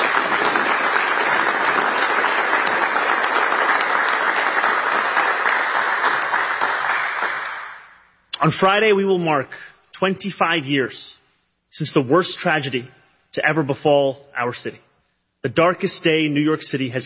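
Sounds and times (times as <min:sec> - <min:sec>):
crowd applause: 0:00.0 - 0:08.1
speech: 0:08.4 - 0:14.8, 0:15.4 - 0:17.0.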